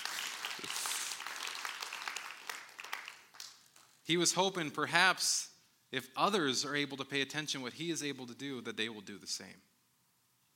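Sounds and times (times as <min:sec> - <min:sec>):
audience applause: 0:00.0 - 0:03.6
speech: 0:04.1 - 0:09.7.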